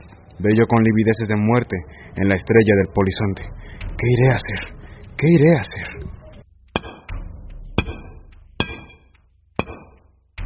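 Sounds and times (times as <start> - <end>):
speech: 0.4 - 6.2
pickaxe striking rock: 6.8 - 7.2, 7.8 - 10.0.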